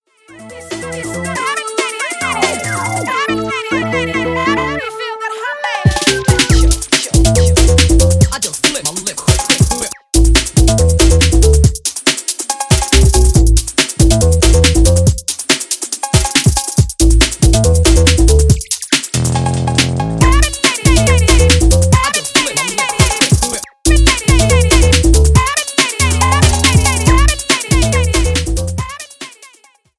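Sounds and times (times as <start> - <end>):
swing music: 0.3 - 29.4.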